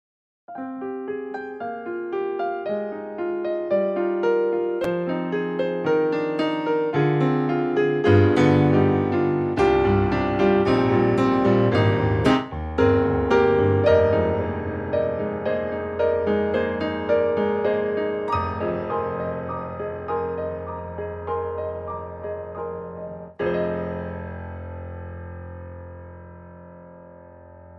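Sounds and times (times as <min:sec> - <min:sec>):
Korg piano: 0:00.5 - 0:27.7.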